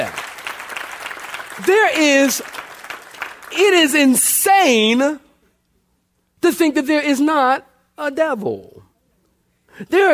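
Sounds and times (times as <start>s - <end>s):
audience clapping: 0.0s - 4.4s
speech: 1.6s - 2.7s, 3.6s - 5.2s, 6.4s - 8.9s, 9.8s - 10.1s.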